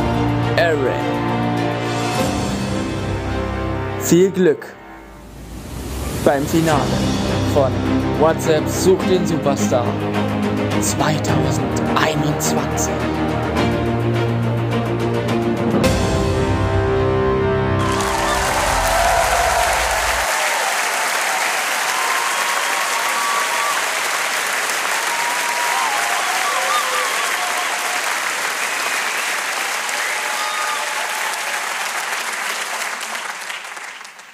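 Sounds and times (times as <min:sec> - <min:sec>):
music: 0:00.0 - 0:20.3
speech: 0:00.6 - 0:01.2, 0:04.0 - 0:04.8, 0:06.2 - 0:13.7
audience applause: 0:17.2 - 0:34.3.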